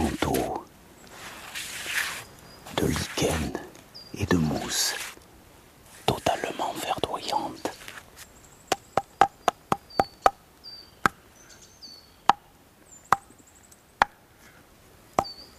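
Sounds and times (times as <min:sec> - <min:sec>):
faint thin bird chirps: 0:00.0 - 0:05.1, 0:06.1 - 0:15.5
speech: 0:04.2 - 0:05.0
sharp hollow knocks on a tree trunk: 0:08.7 - 0:10.4.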